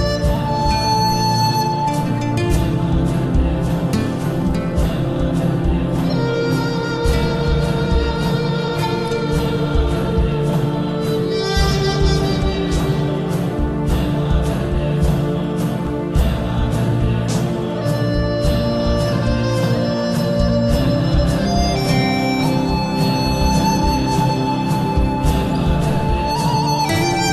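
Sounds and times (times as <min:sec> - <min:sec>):
Indian spirit music: 0:00.0 - 0:27.3.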